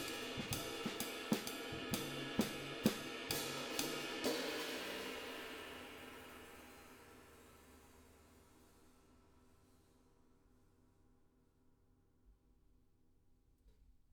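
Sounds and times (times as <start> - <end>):
drums: 0.0 - 10.0.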